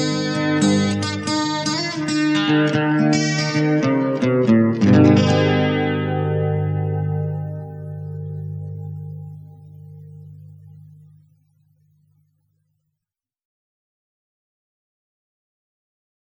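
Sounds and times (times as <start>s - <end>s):
instrumental music: 0.0s - 11.5s.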